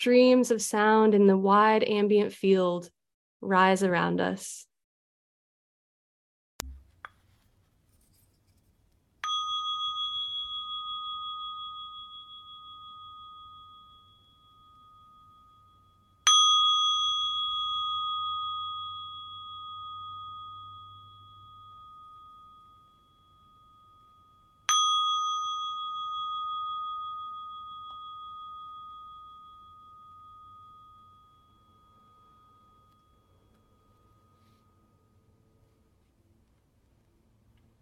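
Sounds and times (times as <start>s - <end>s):
speech: 0.0s - 4.7s
meditation bell ringing: 9.2s - 36.1s.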